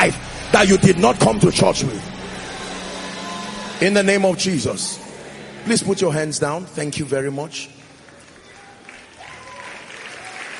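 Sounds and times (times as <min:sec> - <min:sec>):
speech: 0:00.0 - 0:02.1, 0:03.8 - 0:05.0, 0:05.6 - 0:07.8
audience clapping hands: 0:07.7 - 0:10.5.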